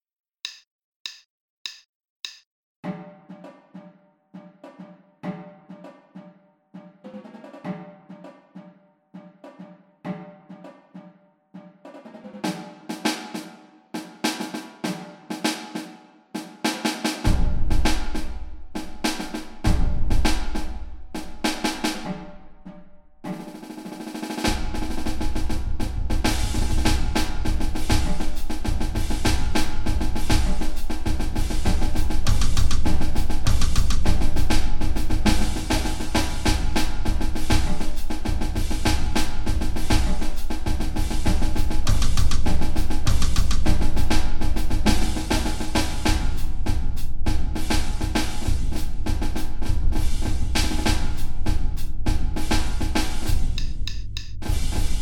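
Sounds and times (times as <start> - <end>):
drum: 0.5 - 2.4, 12.3 - 22.3, 23.2 - 54.9.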